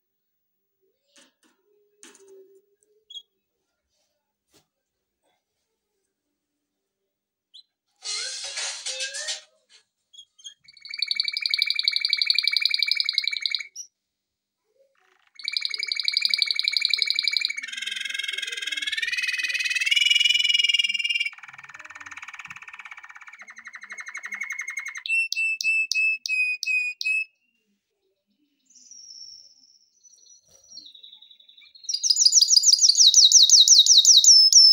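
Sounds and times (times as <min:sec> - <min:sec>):
canary singing trills: 0:03.0 - 0:03.4, 0:10.1 - 0:13.9, 0:15.0 - 0:27.5, 0:28.6 - 0:34.7.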